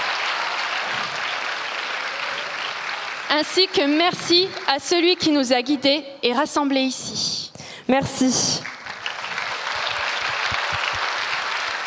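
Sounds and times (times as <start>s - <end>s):
audience applause: 0.0s - 5.3s, 8.6s - 11.8s
speech: 3.3s - 8.7s.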